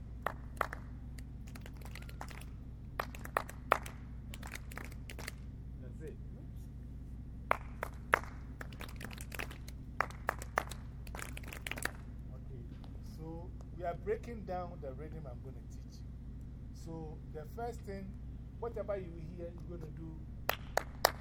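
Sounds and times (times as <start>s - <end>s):
steady low hum: 0.0s - 21.1s
rhythmic hand claps: 0.2s - 5.4s, 7.5s - 12.1s, 20.5s - 21.1s
speech: 13.9s - 15.8s, 16.9s - 20.3s.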